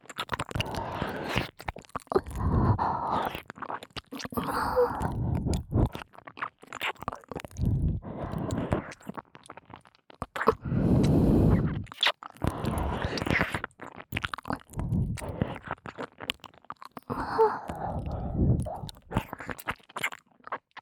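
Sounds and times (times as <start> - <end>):
ear licking sounds: 0.1 - 20.8
sticky sucking sounds: 2.2 - 3.4, 4.2 - 6.0, 7.5 - 9.0, 10.5 - 13.7, 14.5 - 15.7, 17.1 - 19.5.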